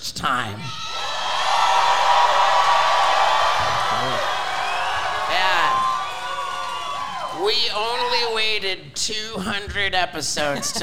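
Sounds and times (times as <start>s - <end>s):
speech: 0.2s - 0.8s, 7.4s - 10.8s
shrill whoops: 0.6s - 8.3s
live theater audience cheering: 0.7s - 8.5s.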